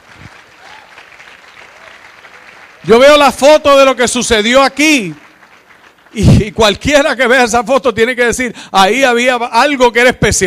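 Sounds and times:
audience applauding: 0:00.0 - 0:07.2
speech: 0:02.8 - 0:05.2, 0:06.1 - 0:10.4.

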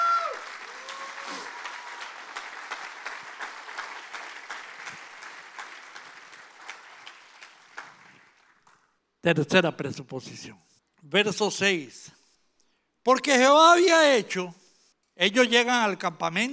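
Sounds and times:
loud audience applause: 0:00.0 - 0:08.8
speech: 0:09.2 - 0:12.2, 0:13.0 - 0:14.6, 0:15.2 - 0:16.5.

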